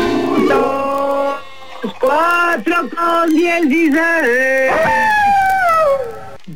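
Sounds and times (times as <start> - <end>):
human voice imitating a coyote howl: 0.2 - 1.5, 4.6 - 6.4
speech: 2.1 - 5.2.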